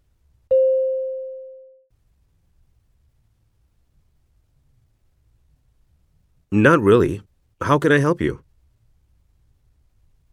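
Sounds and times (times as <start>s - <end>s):
beep cue tone: 0.5s - 1.9s
speech: 6.5s - 8.4s.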